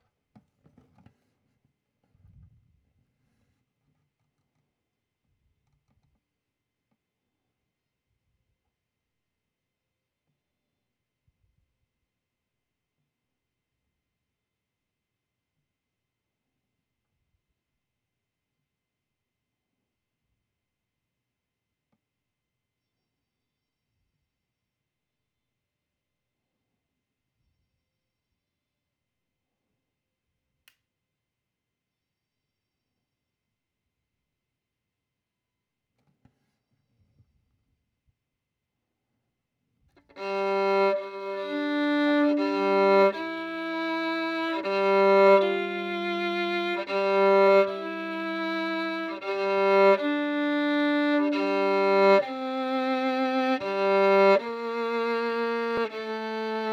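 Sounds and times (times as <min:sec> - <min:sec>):
violin: 0:40.0 - 0:56.7.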